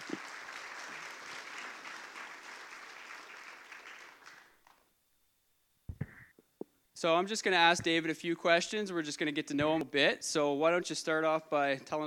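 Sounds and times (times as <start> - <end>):
round of applause: 0.0 - 4.8
speech: 7.0 - 12.0.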